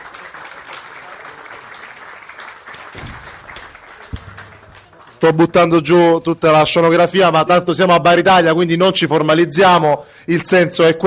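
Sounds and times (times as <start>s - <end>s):
audience applause: 0.0s - 5.8s
speech: 3.0s - 3.4s, 5.2s - 11.0s.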